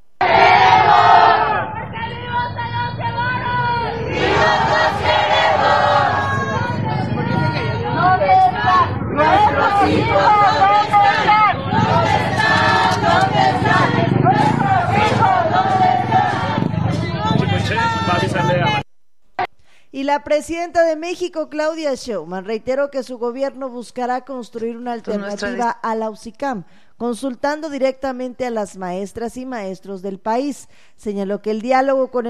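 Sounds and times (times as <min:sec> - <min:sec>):
protest march crowd of search collectives chanting on Calzada de Tlalpan: 0:00.2 - 0:18.8
speech: 0:20.2 - 0:32.2.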